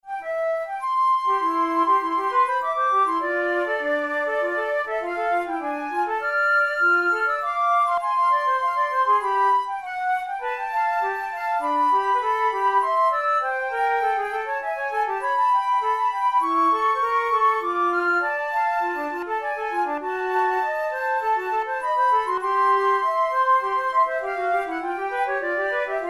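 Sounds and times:
flute duet: 0:00.0 - 0:26.0.

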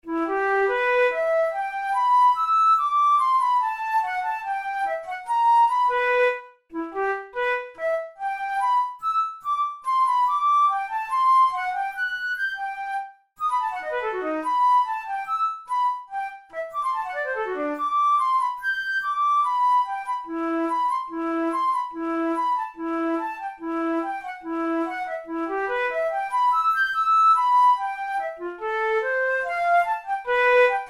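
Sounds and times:
studies for the Boehm flute: 0:00.0 - 0:30.8.

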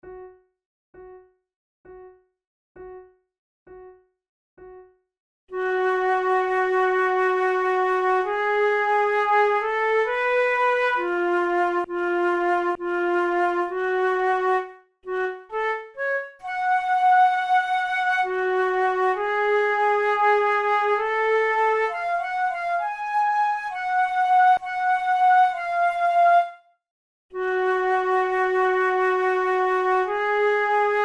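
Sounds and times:
flute duet adagio: 0:05.5 - 0:26.6, 0:27.3 - 0:31.0.

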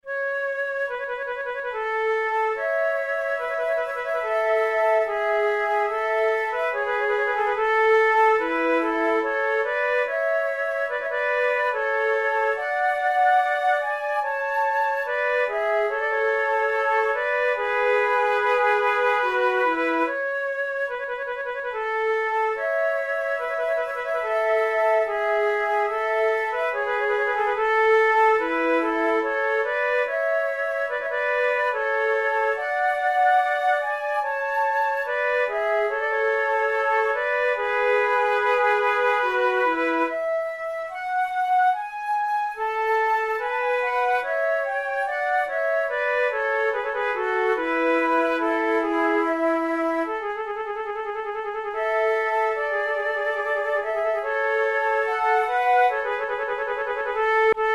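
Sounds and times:
flute sarabande: 0:00.0 - 0:57.7.

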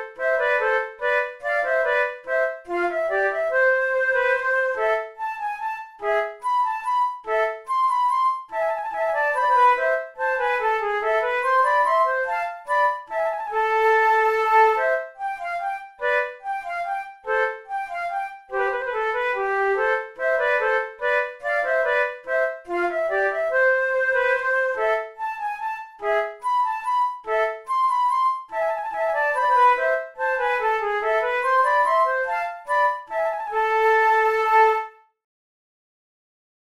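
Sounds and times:
two flutes playing concertos: 0:00.0 - 0:35.0.

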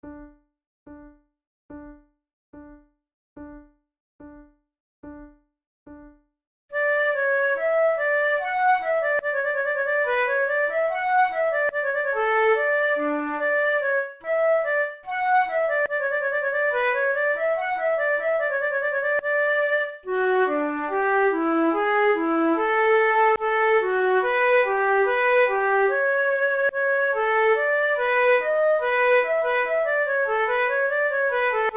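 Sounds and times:
two flutes playing an air: 0:06.8 - 0:31.7.

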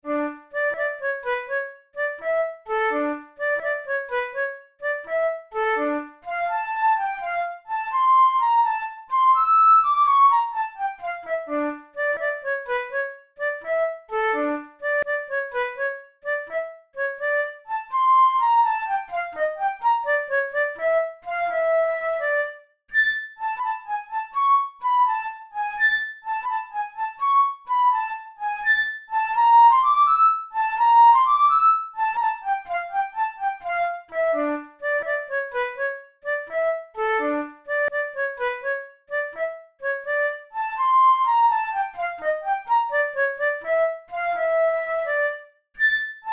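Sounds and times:
funeral march flute tunes: 0:00.1 - 0:45.5.

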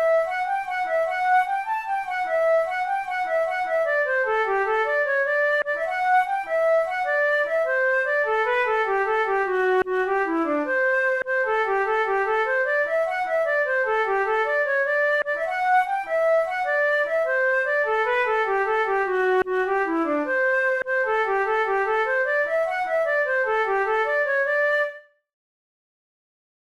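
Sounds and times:
flute playing a folk tune: 0:00.0 - 0:25.3.

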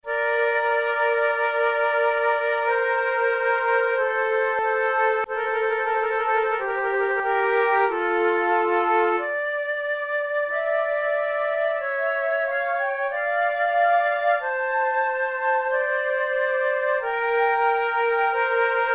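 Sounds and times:
slow flute sonata movement: 0:00.0 - 0:18.9.

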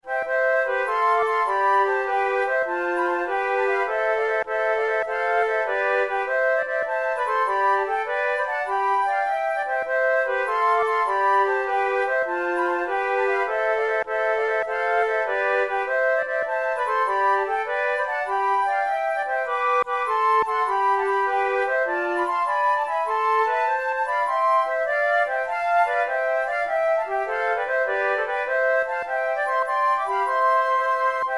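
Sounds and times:
flute sonata gigue: 0:00.0 - 0:31.3.

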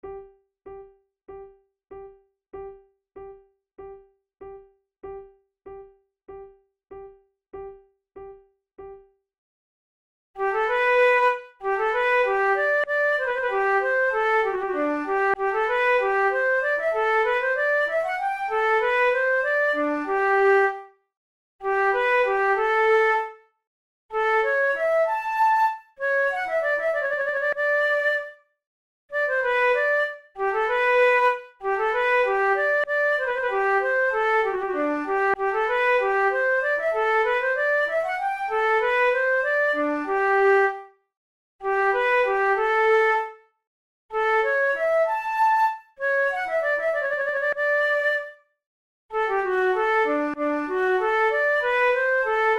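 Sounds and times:
two flutes playing an allemande: 0:10.4 - 0:20.9, 0:21.6 - 0:23.4, 0:24.1 - 0:28.4, 0:29.1 - 0:40.9, 0:41.6 - 0:43.4, 0:44.1 - 0:48.5, 0:49.1 - 0:52.5.

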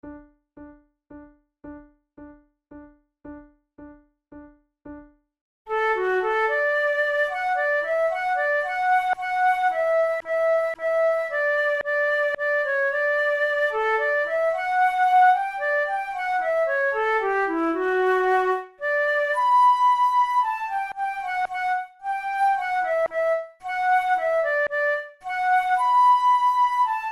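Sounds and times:
flute duet: 0:05.7 - 0:27.0.

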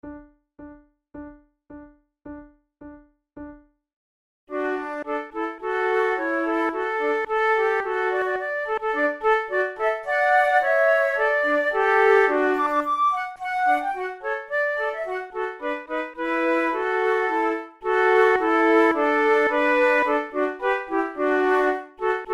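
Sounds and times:
flute playing a march trio: 0:04.5 - 0:22.3.

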